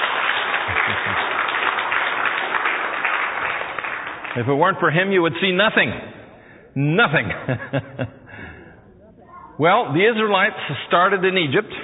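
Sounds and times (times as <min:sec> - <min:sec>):
audience applause: 0:00.0 - 0:04.9
laughter: 0:00.6 - 0:01.5, 0:07.0 - 0:08.7
speech: 0:04.4 - 0:06.2, 0:06.8 - 0:08.2, 0:09.6 - 0:11.8.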